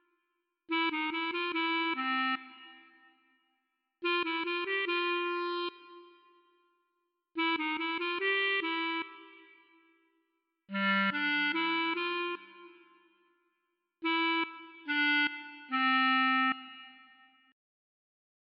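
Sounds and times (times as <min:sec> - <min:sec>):
klezmer music: 0:00.7 - 0:02.8, 0:04.0 - 0:06.3, 0:07.4 - 0:09.7, 0:10.7 - 0:13.0, 0:14.0 - 0:17.3.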